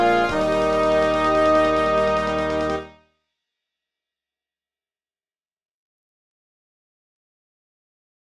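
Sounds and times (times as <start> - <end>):
national anthem playback: 0.0 - 2.9.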